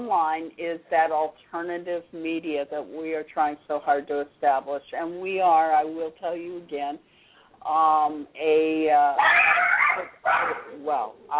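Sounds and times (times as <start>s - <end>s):
speech: 0.0s - 11.3s
dog barking during a kitchen-table home recording: 9.2s - 10.7s.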